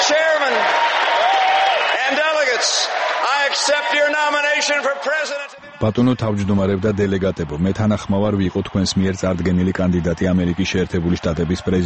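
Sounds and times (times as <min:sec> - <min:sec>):
thunderous applause from a political convention hall crowd: 0:00.0 - 0:11.8
speech: 0:02.6 - 0:11.8.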